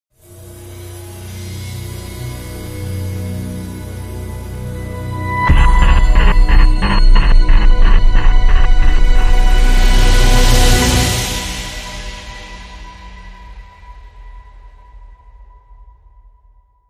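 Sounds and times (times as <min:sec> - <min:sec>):
dramatic sting: 0:05.3 - 0:11.5.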